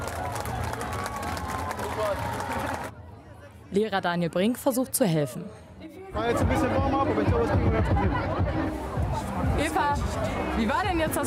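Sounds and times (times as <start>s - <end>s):
outdoor crowd clapping and cheering for children reaching the finish: 0.0s - 3.0s
speech: 2.0s - 2.8s, 3.7s - 11.2s.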